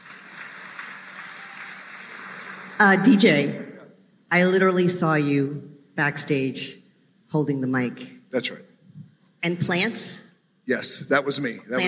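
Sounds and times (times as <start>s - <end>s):
audience applause: 0.0s - 2.9s
speech: 2.8s - 3.6s, 4.3s - 8.7s, 9.4s - 11.8s.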